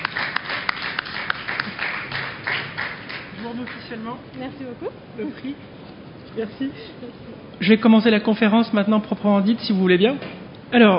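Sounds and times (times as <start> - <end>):
audience applause: 0.0 - 3.9
speech: 3.9 - 10.9.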